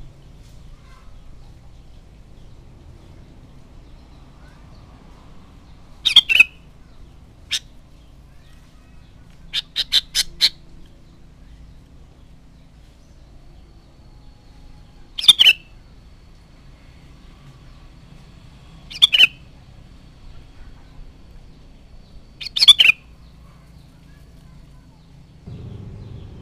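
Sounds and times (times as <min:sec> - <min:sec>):
Sooty-headed bulbul song: 0:06.0 - 0:06.8, 0:15.2 - 0:15.8, 0:18.9 - 0:19.6, 0:22.1 - 0:23.4.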